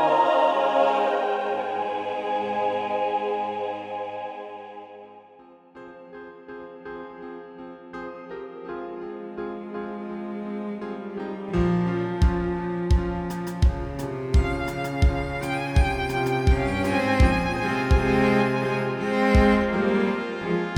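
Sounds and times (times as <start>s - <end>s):
dark church atmosphere: 0.0s - 5.6s, 11.6s - 20.7s.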